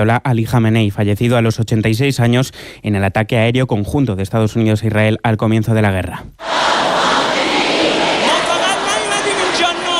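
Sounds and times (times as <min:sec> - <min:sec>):
speech: 0:00.0 - 0:06.6
crowd of thousands of mourners shouting: 0:06.4 - 0:09.9.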